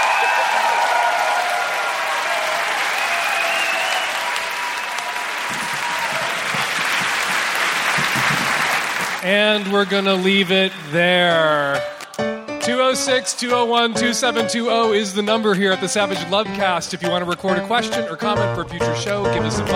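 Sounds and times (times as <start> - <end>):
audience applause: 0.0 - 12.1
speech: 9.2 - 11.9, 12.8 - 19.7.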